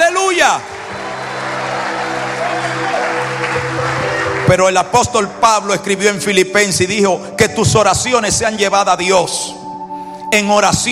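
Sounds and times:
crowd audience applauding: 0.3 - 5.2
speech: 0.5 - 0.8, 4.5 - 9.6, 10.3 - 10.9.

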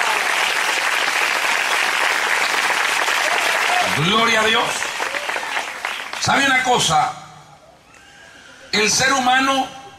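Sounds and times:
church audience applauding: 0.0 - 6.6
speech: 4.0 - 4.8, 6.2 - 7.2, 8.7 - 9.8.

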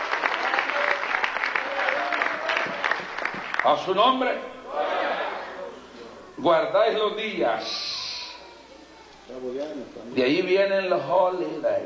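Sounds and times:
congregation clapping at a Spanish-language church service: 0.0 - 4.2
speech: 3.6 - 4.5, 6.4 - 7.9, 9.3 - 11.8.

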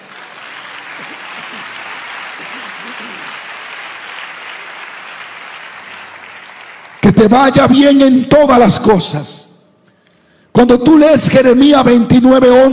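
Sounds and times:
audience applauding: 0.0 - 7.6
speech: 1.0 - 3.5, 7.1 - 9.5, 10.6 - 12.7.

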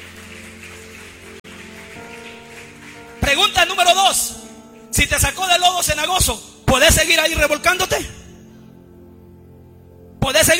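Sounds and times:
audience applause: 0.0 - 4.4
speech: 3.3 - 8.2, 10.2 - 10.5.

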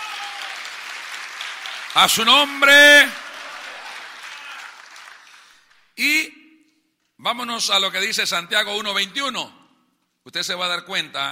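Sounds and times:
audience applause: 0.0 - 5.8
speech: 2.0 - 3.2, 7.3 - 9.6, 10.3 - 11.3.

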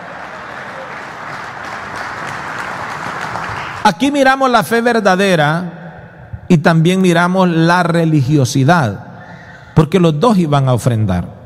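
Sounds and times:
applause: 0.0 - 4.1
speech: 3.9 - 5.8, 6.5 - 9.0, 9.8 - 11.3.

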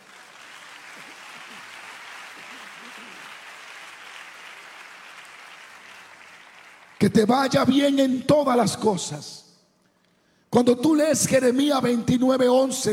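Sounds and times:
audience applause: 0.0 - 7.1
speech: 7.0 - 9.4, 10.6 - 12.9.

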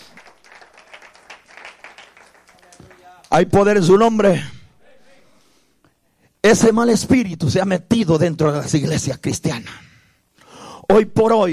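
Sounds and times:
audience applause: 0.0 - 3.2
speech: 3.3 - 4.6, 6.5 - 9.9, 10.9 - 11.5.

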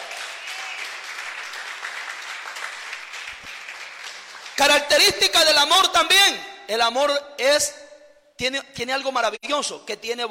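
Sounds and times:
audience applause: 0.0 - 4.6
speech: 4.6 - 7.8, 8.4 - 10.2.

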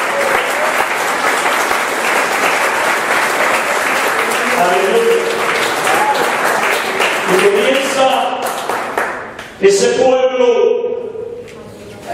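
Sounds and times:
audience applause: 0.0 - 9.4
speech: 4.6 - 5.4, 9.6 - 10.8.

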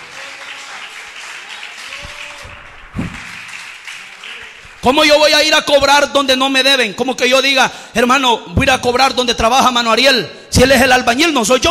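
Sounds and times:
audience applause: 0.0 - 5.2
speech: 4.8 - 11.6.

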